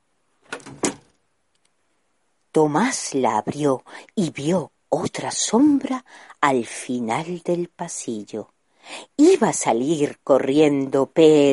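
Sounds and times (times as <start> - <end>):
door swinging shut by itself: 0.5 - 1.1
speech: 2.6 - 11.5.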